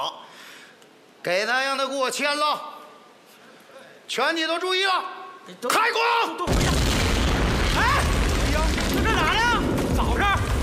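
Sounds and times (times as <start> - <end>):
speech: 1.2 - 2.8, 4.1 - 6.8
blasting explosion at a work site by a mountain spring: 6.5 - 10.6.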